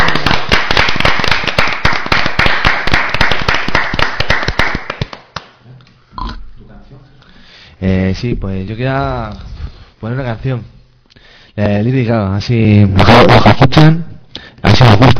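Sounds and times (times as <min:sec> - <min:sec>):
audience applause: 0:00.0 - 0:05.3
speech: 0:08.2 - 0:10.8, 0:11.6 - 0:14.1.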